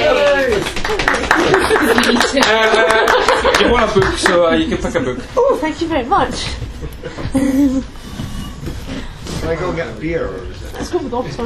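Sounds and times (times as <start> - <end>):
round of applause: 0.0 - 4.5
laughter: 1.2 - 5.3, 6.8 - 7.9
speech: 4.0 - 8.0, 9.5 - 11.4.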